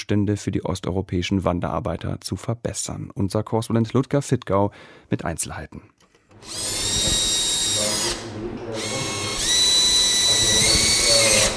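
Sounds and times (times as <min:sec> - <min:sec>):
speech: 0:00.0 - 0:07.0
power drill whining at building renovation: 0:06.3 - 0:11.5.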